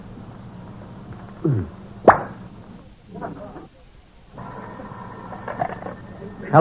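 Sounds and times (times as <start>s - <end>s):
brandy bottle cork pop: 2.0s - 2.4s.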